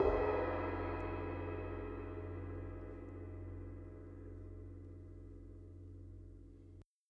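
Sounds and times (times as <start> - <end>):
orchestral cymbal: 0.0 - 4.7.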